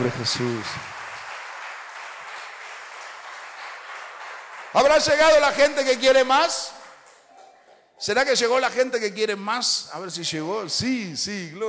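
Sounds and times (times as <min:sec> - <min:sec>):
speech: 0:00.0 - 0:01.0, 0:04.7 - 0:06.8, 0:08.0 - 0:11.6
large audience applause: 0:00.0 - 0:07.3.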